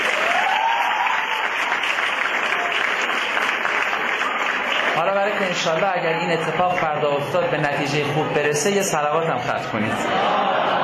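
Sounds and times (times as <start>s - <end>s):
audience clapping at a talk: 0.0s - 7.0s
speech: 5.6s - 10.8s
laughter: 9.8s - 10.8s.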